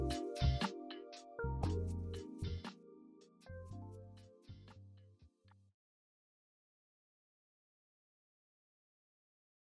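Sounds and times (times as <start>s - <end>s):
jazzy music: 0.0s - 5.6s.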